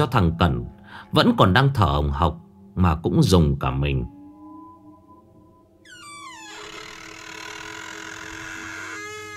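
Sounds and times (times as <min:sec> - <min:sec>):
speech: 0:00.0 - 0:04.2
door creaking in the night: 0:05.8 - 0:09.3.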